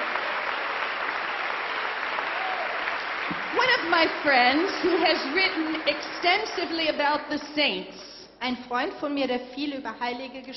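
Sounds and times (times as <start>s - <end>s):
audience round of applause: 0.0s - 7.2s
speech: 3.8s - 10.5s.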